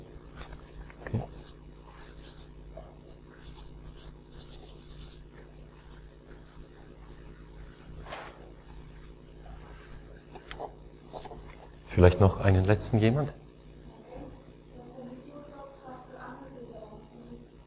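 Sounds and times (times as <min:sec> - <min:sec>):
pen scratching on paper: 0:01.2 - 0:02.5, 0:03.1 - 0:10.0
speech: 0:12.0 - 0:13.4.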